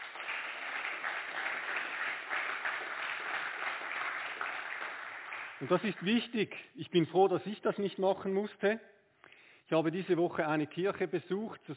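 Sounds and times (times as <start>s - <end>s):
audience applause: 0.0s - 6.2s
speech: 5.6s - 8.9s, 9.7s - 11.7s.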